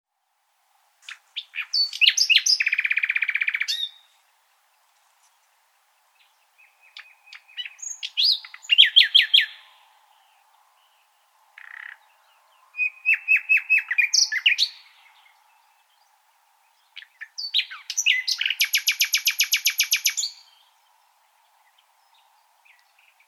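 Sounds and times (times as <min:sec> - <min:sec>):
common nightingale song: 0:00.2 - 0:23.2.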